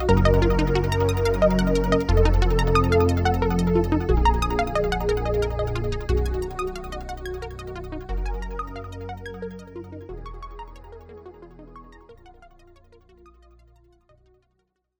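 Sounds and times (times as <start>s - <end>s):
stereo synth sequence: 0.0s - 10.0s.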